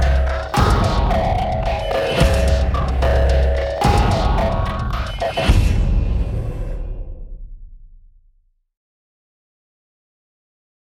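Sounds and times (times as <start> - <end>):
percussion: 0.0 - 8.2.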